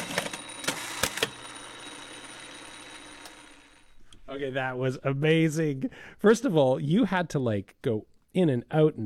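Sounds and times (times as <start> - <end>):
sewing machine stitching the button fly on jeans in a workshop: 0.0 - 3.9
speech: 4.4 - 9.0.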